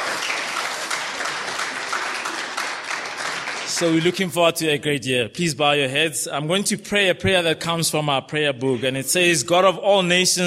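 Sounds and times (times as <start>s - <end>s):
church congregation applauding to welcome gap year volunteers: 0.0s - 4.7s
speech: 3.8s - 10.4s.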